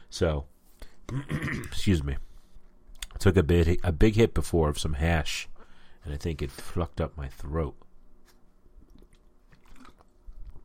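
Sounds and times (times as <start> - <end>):
speech: 0.1 - 0.5, 1.1 - 2.3, 3.2 - 7.8
person drinking water: 8.7 - 10.6.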